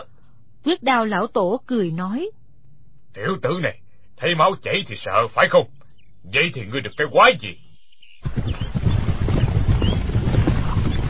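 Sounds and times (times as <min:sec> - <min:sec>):
speech: 0:00.6 - 0:02.4, 0:03.1 - 0:07.6
galloping horse hooves of more than ten riders giving chase: 0:08.2 - 0:11.0.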